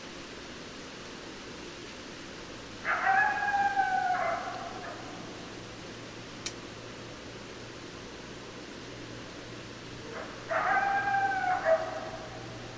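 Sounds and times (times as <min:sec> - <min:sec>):
steady low hum and hiss: 0:00.0 - 0:12.7
coyote howling: 0:02.8 - 0:05.3, 0:10.0 - 0:12.6.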